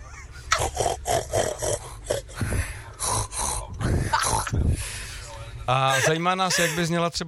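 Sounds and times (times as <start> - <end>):
voices imitating pig grunts: 0.5 - 2.4, 3.0 - 4.6
speech: 5.7 - 7.2.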